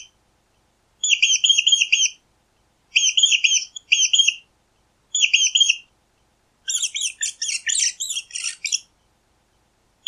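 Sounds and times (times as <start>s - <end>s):
mouse squeaking: 1.1s - 2.1s, 3.0s - 4.4s, 5.2s - 5.8s, 6.7s - 8.9s.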